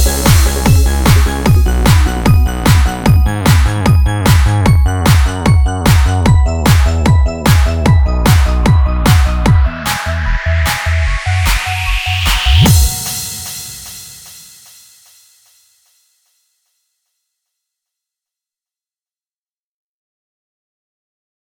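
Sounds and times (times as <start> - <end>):
instrumental music: 0.0 - 14.6.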